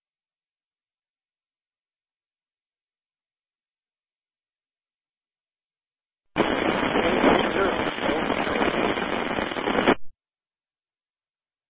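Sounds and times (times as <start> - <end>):
burst of radio static: 6.4 - 10.1.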